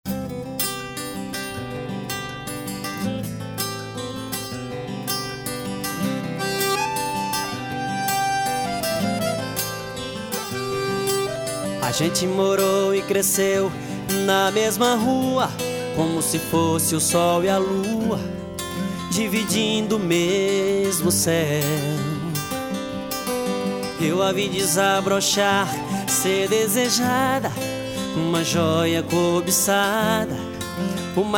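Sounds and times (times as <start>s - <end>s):
sertanejo universitario music: 0.1s - 31.3s.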